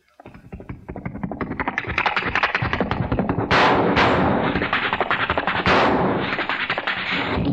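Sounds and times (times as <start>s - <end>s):
Colt 45 revolver gunshots: 2.2s - 7.5s.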